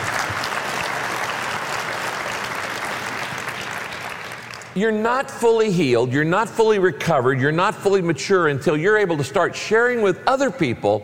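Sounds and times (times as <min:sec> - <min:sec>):
audience clapping: 0:00.0 - 0:04.8
speech: 0:04.8 - 0:11.0.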